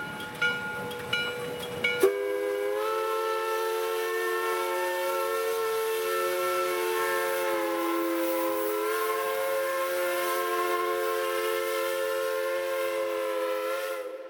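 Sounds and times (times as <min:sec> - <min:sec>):
steam whistle: 0:00.8 - 0:14.2.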